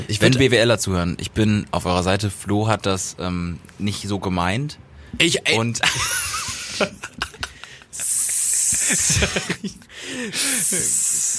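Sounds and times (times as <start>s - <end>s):
speech: 0.0s - 7.2s, 8.9s - 11.1s
laughter: 5.8s - 11.0s
voice imitating a snake hiss: 8.0s - 9.1s, 10.4s - 11.3s.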